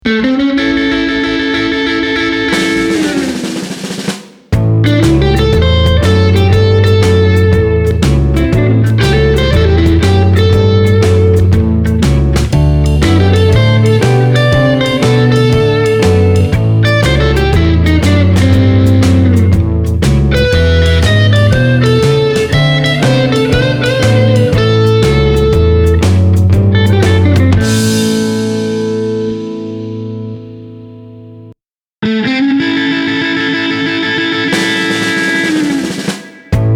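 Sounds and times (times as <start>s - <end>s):
blues music: 0.0s - 36.7s.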